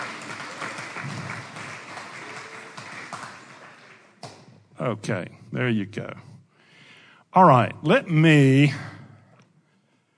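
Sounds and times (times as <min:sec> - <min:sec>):
audience applause: 0:00.0 - 0:04.2
speech: 0:04.8 - 0:06.3, 0:07.4 - 0:08.9.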